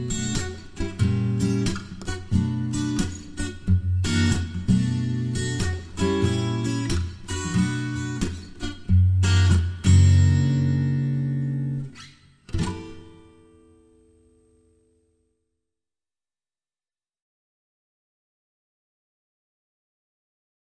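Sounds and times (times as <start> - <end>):
blues music: 0.0 - 14.0.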